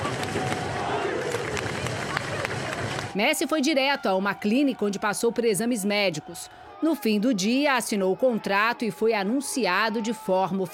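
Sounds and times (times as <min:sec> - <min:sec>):
scattered claps or bangs: 0:00.0 - 0:03.2
crowd celebrating outside a stadium: 0:00.0 - 0:10.7
speech: 0:03.2 - 0:10.7.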